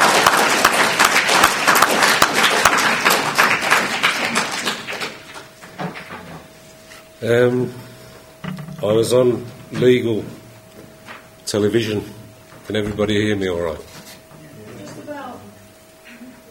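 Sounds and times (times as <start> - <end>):
audience clapping hands: 0.0 - 6.4
speech: 7.2 - 7.9, 8.8 - 10.4, 11.5 - 13.9.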